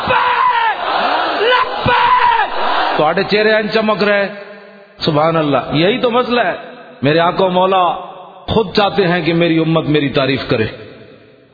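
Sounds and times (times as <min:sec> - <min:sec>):
crowd at a religious gathering chanting a slogan: 0:00.7 - 0:03.3
speech: 0:03.0 - 0:10.8.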